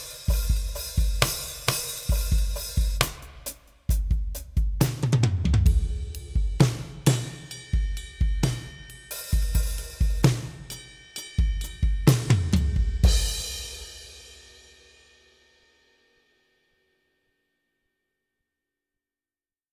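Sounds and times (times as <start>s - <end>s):
Pearl eMERGE electronic drum kit power ballad: 0.0s - 15.0s.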